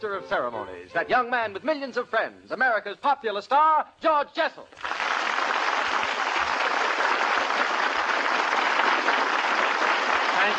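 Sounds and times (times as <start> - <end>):
speech: 0.0 - 5.0
audience applause: 4.8 - 10.5.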